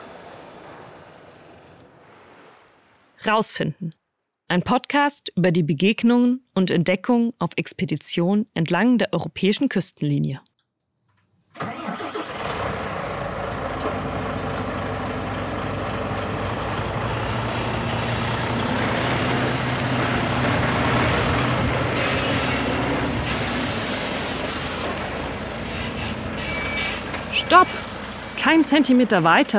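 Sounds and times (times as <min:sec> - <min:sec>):
truck engine rumbling while arriving and parking at harbour: 0:00.0 - 0:02.0, 0:11.5 - 0:29.5
speech: 0:03.2 - 0:10.5, 0:27.5 - 0:27.8, 0:28.4 - 0:29.5.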